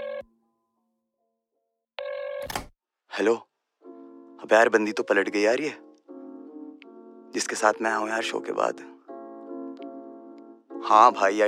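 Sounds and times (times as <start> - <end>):
phone ringback tone while placing a call: 0.0 - 0.4, 2.0 - 2.5
speech: 3.2 - 3.5, 4.4 - 5.8, 7.3 - 9.0, 10.8 - 11.4.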